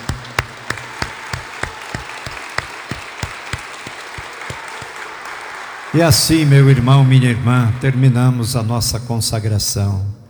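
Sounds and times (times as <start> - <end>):
audience applause in sanctuary: 0.0 - 9.0
speech: 6.0 - 10.2.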